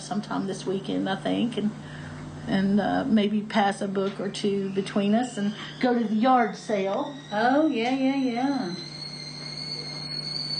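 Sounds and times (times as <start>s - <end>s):
speech: 0.1s - 8.9s
tea kettle whistling: 4.4s - 10.5s.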